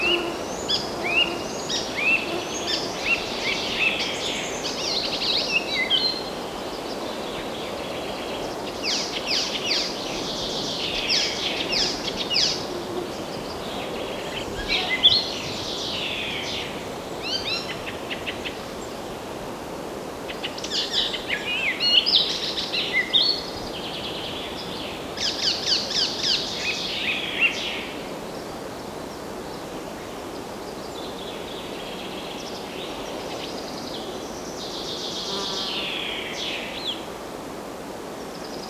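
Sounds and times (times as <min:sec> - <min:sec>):
birds in a forest: 0:00.0 - 0:38.6.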